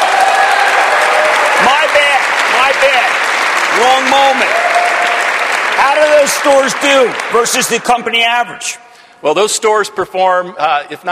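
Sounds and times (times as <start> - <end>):
studio audience cheering and applause: 0.0 - 8.1
speech: 3.8 - 4.7, 5.8 - 11.1.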